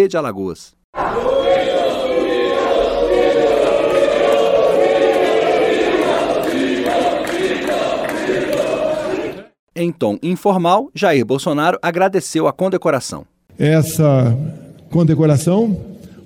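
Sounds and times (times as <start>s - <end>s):
speech: 0.0s - 1.7s, 9.8s - 15.9s
large crowd booing: 1.0s - 9.6s
scattered clapping: 1.4s - 9.4s.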